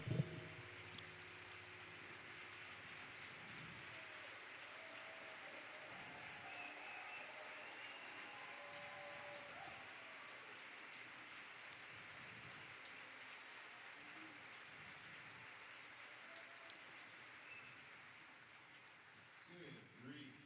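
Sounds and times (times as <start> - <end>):
audience applause: 0.0 - 19.9.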